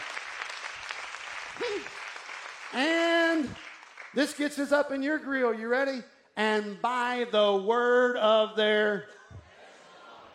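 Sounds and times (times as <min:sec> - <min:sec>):
church congregation hand clapping in praise during a sermon: 0:00.0 - 0:05.4
speech: 0:01.6 - 0:02.0, 0:02.7 - 0:03.6, 0:04.2 - 0:09.2.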